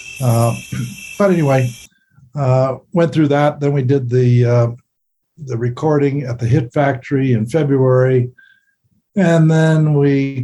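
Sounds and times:
crickets chirping outdoors at night: 0.0 - 2.0
speech: 0.2 - 4.8, 5.4 - 8.4, 9.2 - 10.4.

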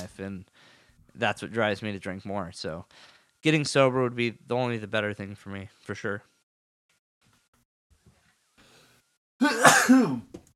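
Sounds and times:
speech: 0.1 - 6.3, 9.4 - 10.3
person sneezing: 9.4 - 10.3.

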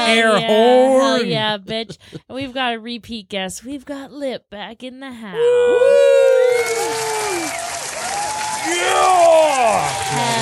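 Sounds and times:
speech: 0.1 - 7.1, 8.7 - 10.3
whoops and cheering voices: 5.4 - 10.3
studio audience applause: 6.3 - 10.3.

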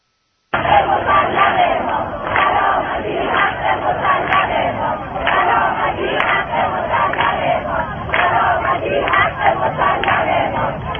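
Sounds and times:
protest crowd chanting outside governor's office: 0.5 - 10.9.

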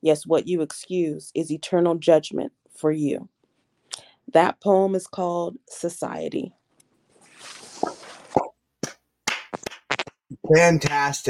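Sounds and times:
speech: 0.0 - 3.3, 4.0 - 6.6, 10.5 - 11.2
hands clapping into a microphone: 8.4 - 11.2.

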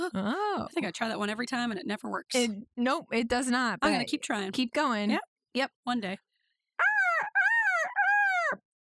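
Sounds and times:
speech: 0.1 - 6.3
person imitating a generic bird call: 6.8 - 8.6.

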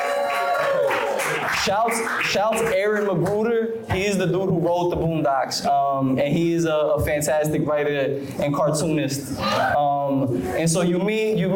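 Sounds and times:
audience making noise: 0.0 - 2.8
speech: 1.6 - 11.5.

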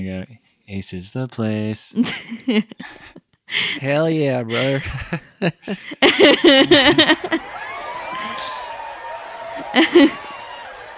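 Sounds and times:
speech: 0.0 - 7.6, 9.7 - 10.2
laughter: 2.0 - 3.2, 3.9 - 10.9
applause sound effect sample: 7.2 - 10.9.

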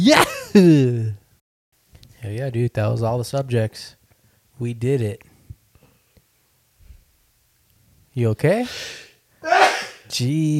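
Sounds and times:
speech: 0.0 - 1.2, 2.2 - 4.0, 4.6 - 5.3, 8.2 - 10.5
stifled sneeze: 8.6 - 10.1.

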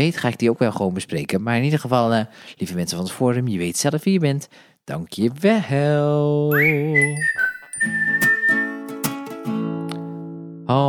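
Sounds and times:
speech: 0.0 - 8.3, 10.7 - 10.8
whistle tune: 6.5 - 9.2.

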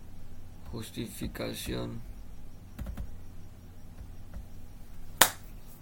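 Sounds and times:
speech: 0.7 - 2.1
hand clap swatting a mosquito: 5.2 - 5.5.

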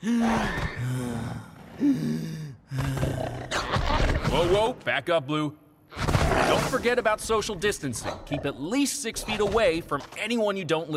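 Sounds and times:
voice imitating heavy labored gasping breathing: 0.0 - 3.4
speech: 4.5 - 5.6, 6.3 - 10.9.

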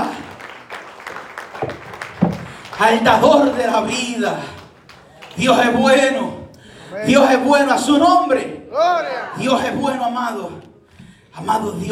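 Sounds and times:
audience applause: 0.0 - 6.0
speech: 2.8 - 4.6, 5.4 - 10.6, 11.4 - 11.9.

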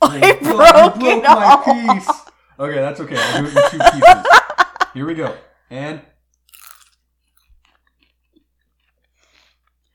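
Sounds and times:
laughter: 0.0 - 2.4, 3.0 - 5.4
speech: 0.1 - 0.4, 1.2 - 4.4, 5.0 - 6.0
chewing stale popcorn: 6.4 - 9.9.

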